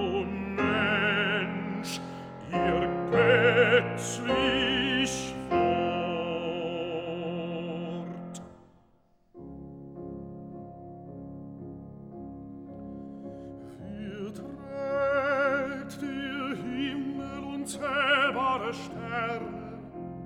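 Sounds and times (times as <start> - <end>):
person singing: 0.0 - 8.6, 13.8 - 20.2
piano: 0.0 - 20.2.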